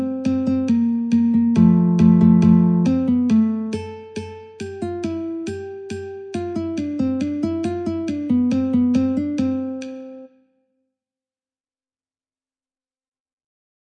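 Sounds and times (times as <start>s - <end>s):
metronome: 0.0s - 10.3s
ragtime guitar: 0.0s - 10.3s.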